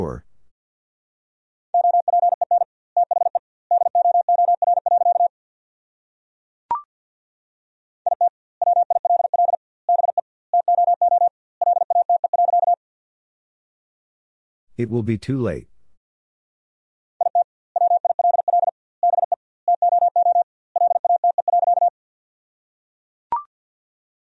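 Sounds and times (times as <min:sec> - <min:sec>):
Morse code beeps sending a sentence: 0:01.8 - 0:05.3, 0:08.1 - 0:12.8, 0:17.2 - 0:21.9
speech: 0:14.8 - 0:15.7.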